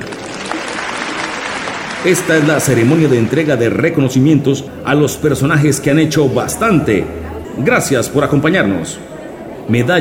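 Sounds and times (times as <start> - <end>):
audience applauding: 0.0 - 4.0
speech: 2.0 - 9.1, 9.7 - 10.0.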